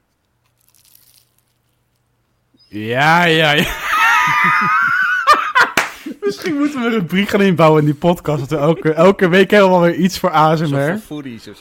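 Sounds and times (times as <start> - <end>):
biting into a cream-filled puff pastry: 0.2 - 2.1
speech: 2.7 - 3.8, 4.4 - 5.0, 6.3 - 11.6
laughter: 3.1 - 7.0, 8.2 - 9.4.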